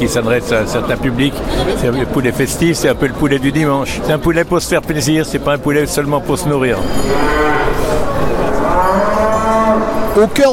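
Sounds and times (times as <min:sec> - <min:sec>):
speech: 0:00.0 - 0:08.1, 0:10.2 - 0:10.5
busy murmur: 0:00.0 - 0:10.5
Montbéliarde cattle mooing in an exhibition hall: 0:06.8 - 0:10.2.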